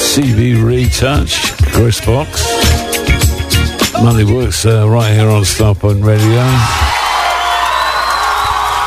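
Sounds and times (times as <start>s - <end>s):
speech: 0.1s - 3.0s, 4.0s - 6.9s
crowd cheering and applause: 6.2s - 8.8s.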